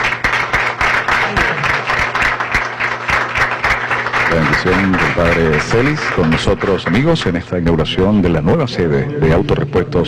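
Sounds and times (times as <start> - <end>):
crowd applause at the inauguration of an auto parts shop: 0.0 - 8.0
speech: 4.4 - 10.0.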